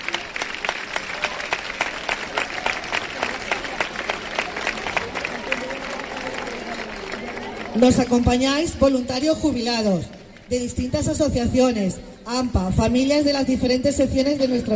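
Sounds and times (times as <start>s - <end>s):
audience applause: 0.0s - 8.2s
speech: 7.8s - 14.7s.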